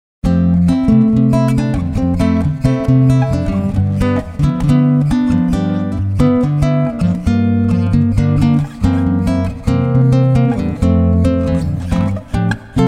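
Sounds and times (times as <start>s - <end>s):
guitar: 0.2s - 12.8s.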